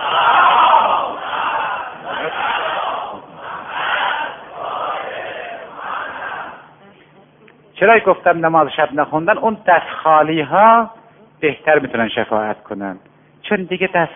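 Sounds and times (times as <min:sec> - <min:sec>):
congregation reciting salawat in unison: 0:00.0 - 0:06.8
speech: 0:07.8 - 0:14.1.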